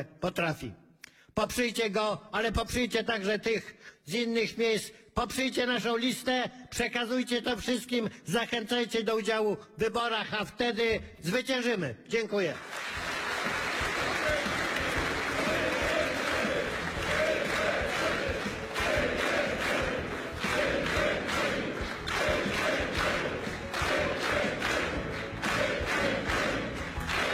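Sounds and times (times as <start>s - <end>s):
speech: 0.0s - 0.8s, 1.4s - 13.6s
crowd applause: 12.6s - 27.3s.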